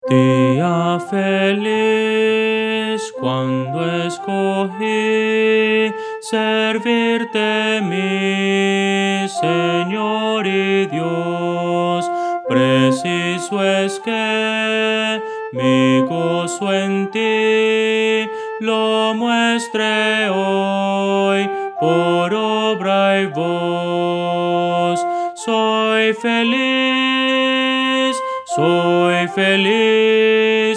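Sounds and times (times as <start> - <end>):
soprano singing Christian hymn: 0.0 - 30.7.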